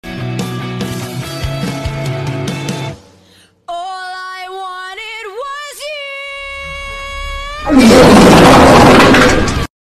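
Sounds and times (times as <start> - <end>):
fart: 7.7 - 9.6.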